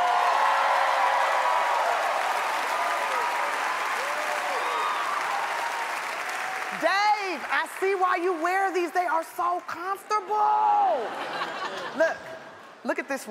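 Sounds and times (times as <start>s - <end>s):
scattered cheers and whoops: 0.0s - 6.7s
large crowd applauding loudly: 0.0s - 11.8s
speech: 6.8s - 12.2s, 12.8s - 13.3s
laughter: 10.8s - 12.5s.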